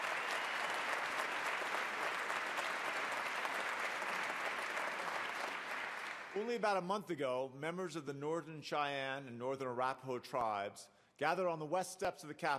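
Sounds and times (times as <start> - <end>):
audience applause: 0.0 - 6.5
speech: 6.4 - 12.5.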